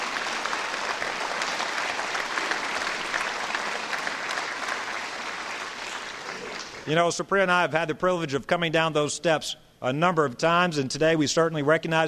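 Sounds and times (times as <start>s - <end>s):
audience applause: 0.0s - 6.9s
speech: 6.9s - 12.0s.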